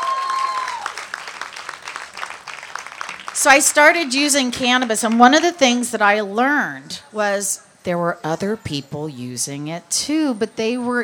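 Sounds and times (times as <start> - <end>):
audience applause: 0.0 - 4.1
speech: 3.4 - 11.0.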